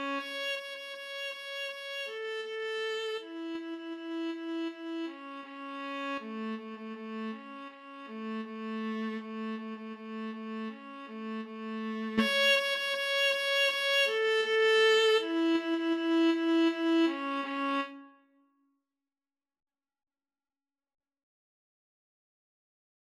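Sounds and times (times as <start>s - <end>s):
violin and viola duet playing a march: 0.0s - 7.4s, 8.1s - 18.0s.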